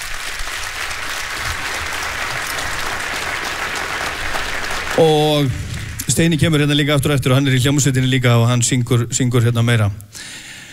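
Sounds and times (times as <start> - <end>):
audience applauding a performer: 0.0 - 7.6
speech: 5.0 - 10.5.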